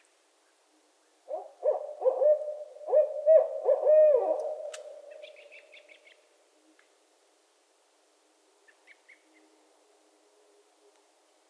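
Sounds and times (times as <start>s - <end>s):
barred owls hooting and cackling: 1.3s - 5.9s.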